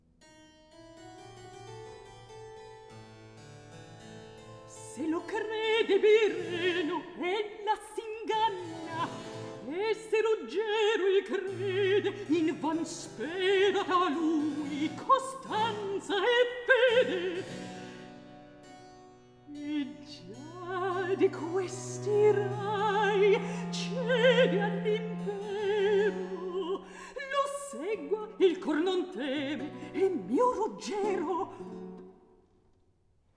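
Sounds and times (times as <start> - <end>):
recitative singing: 4.7 - 18.5, 19.5 - 32.3.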